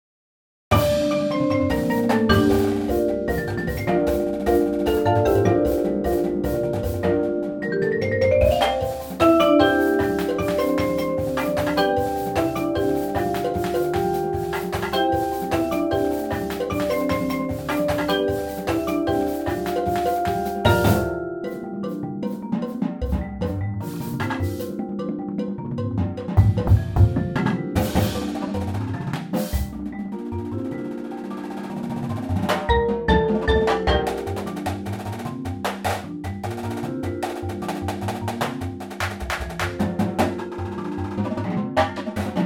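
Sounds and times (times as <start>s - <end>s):
percussion: 0.7s - 42.4s.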